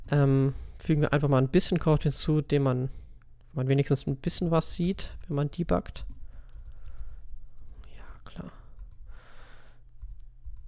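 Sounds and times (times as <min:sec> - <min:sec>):
speech: 0:00.1 - 0:03.0, 0:03.6 - 0:06.2, 0:08.4 - 0:08.6
slow irregular typing on a computer keyboard: 0:06.0 - 0:08.1, 0:08.7 - 0:09.1, 0:10.0 - 0:10.6.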